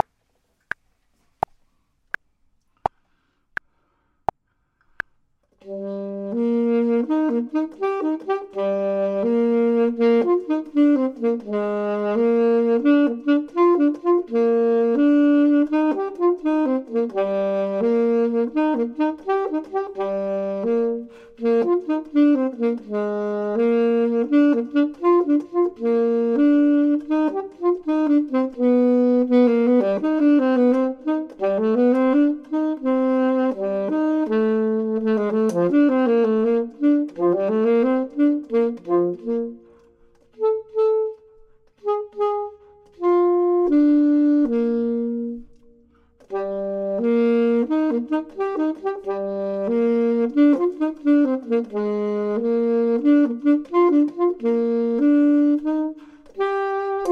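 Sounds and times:
saxophone: 4.9 - 57.0
clarinet: 5.5 - 57.0.

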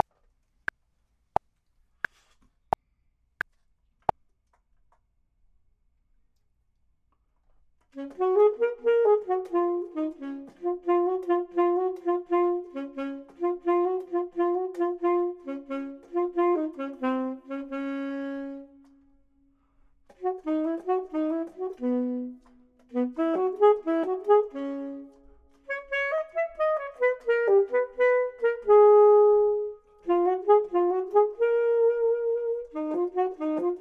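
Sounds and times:
clarinet: 7.9 - 33.7
saxophone: 7.9 - 33.7.

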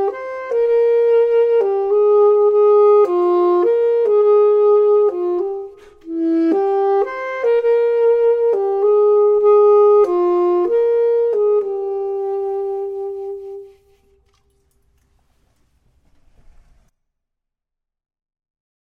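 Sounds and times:
saxophone: 0.0 - 14.5
clarinet: 0.0 - 14.6.

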